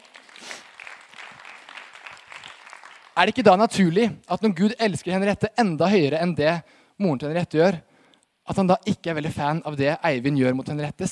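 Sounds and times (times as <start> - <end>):
audience applause: 0.0 - 3.4
speech: 3.2 - 7.9, 8.5 - 11.0.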